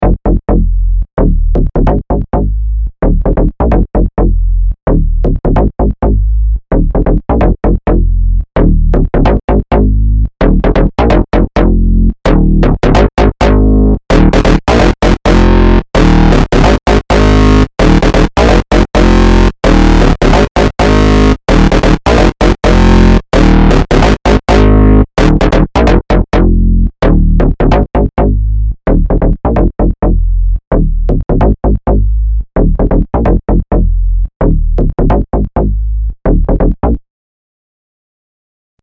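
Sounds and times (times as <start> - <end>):
blue synth bass lead: 0.0 - 37.0.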